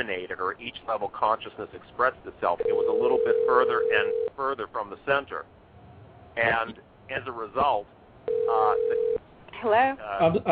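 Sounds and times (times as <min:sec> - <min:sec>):
speech: 0:00.0 - 0:05.6, 0:06.4 - 0:08.9, 0:09.6 - 0:10.4
incoming-call telephone tone on Blog Talk Radio: 0:02.6 - 0:04.4, 0:08.3 - 0:09.2.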